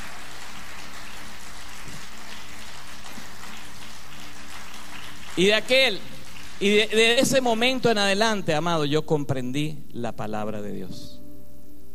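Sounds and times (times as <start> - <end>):
audience applause: 0.0 - 7.0
speech: 5.4 - 11.2.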